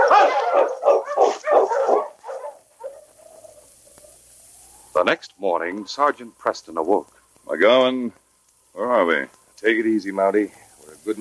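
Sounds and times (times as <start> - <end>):
dog barking: 0.0 - 3.7
speech: 5.1 - 8.2, 8.8 - 11.1.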